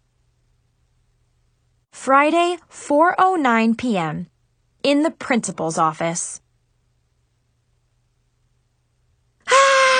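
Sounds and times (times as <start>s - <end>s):
speech: 2.0s - 6.4s
high-pitched scream: 9.4s - 9.9s.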